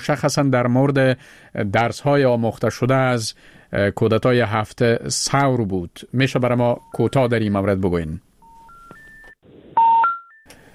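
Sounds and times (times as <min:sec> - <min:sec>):
speech: 0:00.0 - 0:08.3
soft tone: 0:08.4 - 0:10.5
telephone tones as a phone call with a guest drops: 0:08.4 - 0:10.7.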